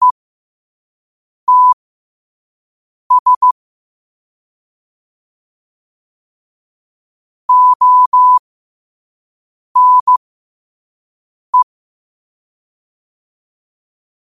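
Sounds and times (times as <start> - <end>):
morse code at 5 wpm: 1.5 - 1.8, 3.1 - 3.5, 7.5 - 8.4, 9.8 - 10.2.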